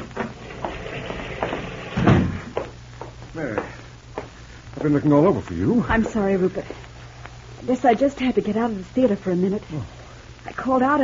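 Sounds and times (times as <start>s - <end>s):
door opening: 0.0s - 2.6s
speech: 4.8s - 6.9s, 7.6s - 11.0s.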